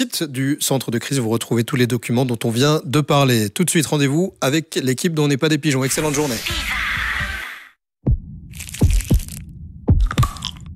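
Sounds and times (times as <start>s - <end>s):
speech: 0.0s - 7.2s
heartbeat thumping in lub-dub pairs: 8.0s - 10.7s.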